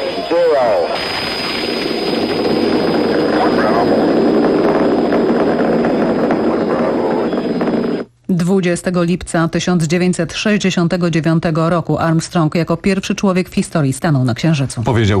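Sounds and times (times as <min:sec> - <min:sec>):
Apollo 11 Saturn V rocket engines igniting and launching: 0:00.0 - 0:08.1
speech: 0:08.5 - 0:15.1.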